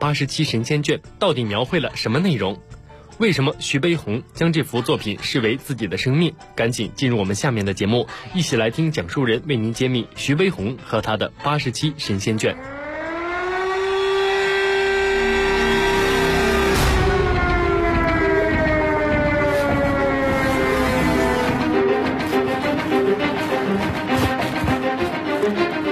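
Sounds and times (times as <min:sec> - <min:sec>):
speech: 0:00.0 - 0:12.8
air raid siren wailing: 0:12.4 - 0:25.9.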